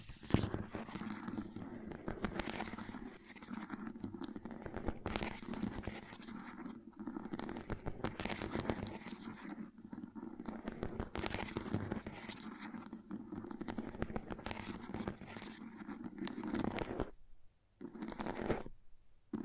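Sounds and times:
crayons being carved and cut: 0.0s - 17.2s, 17.8s - 18.7s.

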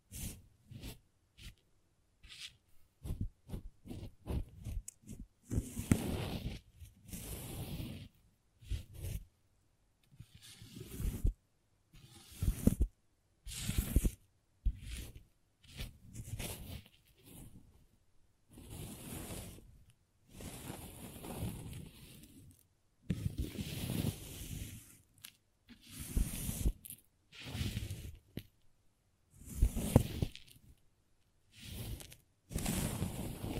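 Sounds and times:
crayons scratching and scraping: 2.2s - 9.3s, 10.1s - 11.4s, 12.0s - 12.9s, 13.5s - 17.6s, 18.5s - 19.7s, 20.3s - 22.6s, 23.2s - 28.4s, 29.4s - 30.8s, 31.5s - 33.5s.

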